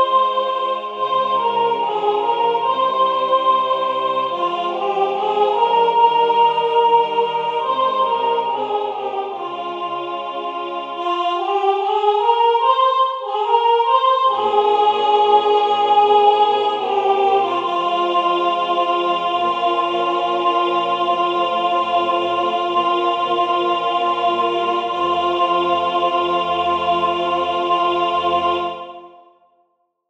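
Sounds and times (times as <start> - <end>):
soprano singing a carol: 0.0 - 29.3.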